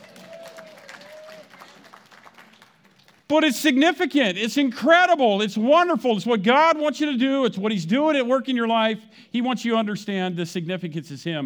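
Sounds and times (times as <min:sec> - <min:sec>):
audience applause: 0:00.0 - 0:03.3
speech: 0:03.3 - 0:11.4.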